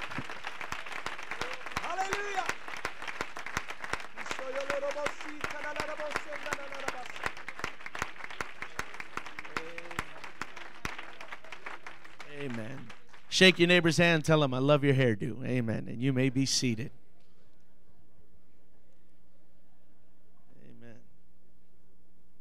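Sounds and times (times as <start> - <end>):
audience applauding with hand clapping: 0.0 - 14.4
speech: 13.4 - 17.0.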